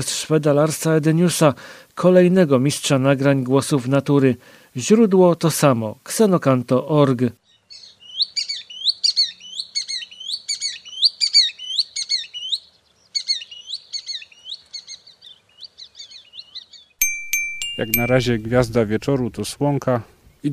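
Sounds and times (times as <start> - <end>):
speech: 0.0 - 7.4, 17.8 - 20.5
green sandpiper calls: 7.7 - 15.1.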